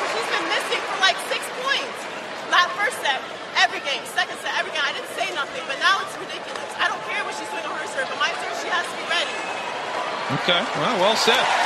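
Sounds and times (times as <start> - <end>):
tennis crowd cheering: 0.0 - 11.6
speech: 10.3 - 11.6.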